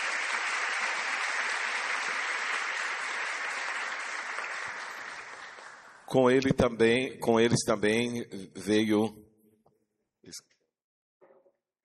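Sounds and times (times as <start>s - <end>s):
warm round of applause: 0.0s - 6.1s
speech: 6.1s - 9.2s, 10.3s - 10.5s.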